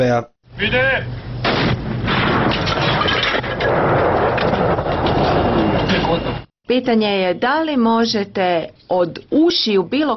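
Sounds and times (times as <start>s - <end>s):
speech: 0.0s - 1.7s, 5.6s - 10.1s
120 mm mortar firing: 1.4s - 5.8s.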